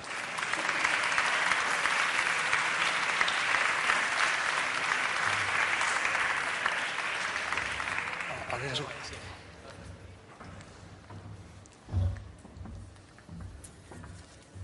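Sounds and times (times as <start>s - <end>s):
applause: 0.0s - 9.6s.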